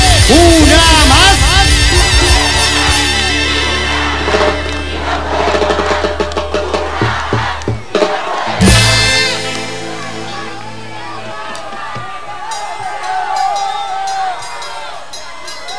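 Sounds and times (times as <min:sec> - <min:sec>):
loud bass-heavy music: 0:00.0 - 0:11.6
concert crowd clapping and shouting: 0:00.0 - 0:15.7.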